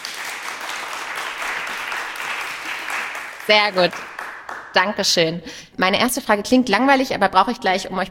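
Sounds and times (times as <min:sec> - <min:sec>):
whole room clapping loudly: 0:00.0 - 0:05.0
speech: 0:03.5 - 0:04.1, 0:04.8 - 0:08.0.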